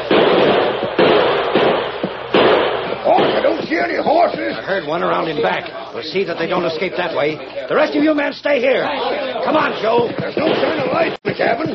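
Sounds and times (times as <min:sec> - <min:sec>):
gunfire volley: 0:00.0 - 0:04.4, 0:09.7 - 0:11.7
speech: 0:04.6 - 0:11.7.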